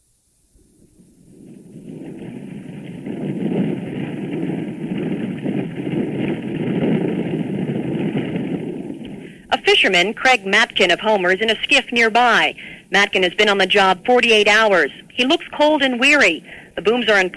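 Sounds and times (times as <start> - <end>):
huge helicopter landing on a sandy beach: 1.7 - 17.3
speech: 9.8 - 17.3.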